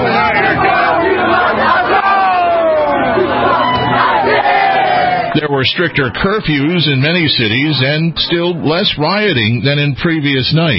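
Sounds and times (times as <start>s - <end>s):
protesters shouting outside Trump Tower in New York City: 0.0s - 6.2s
speech: 5.4s - 10.7s.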